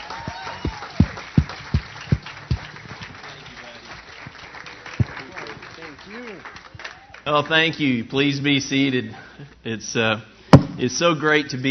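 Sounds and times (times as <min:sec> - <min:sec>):
audience applause: 0:00.0 - 0:07.6
loud evenly spaced thumps: 0:00.6 - 0:03.3, 0:10.6 - 0:10.9
speech: 0:07.3 - 0:11.6.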